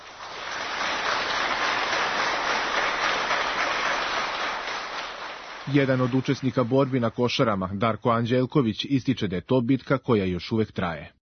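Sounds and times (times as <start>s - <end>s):
applause for Battle of Košare veterans at a book launch: 0.0s - 7.6s
speech: 5.7s - 11.2s.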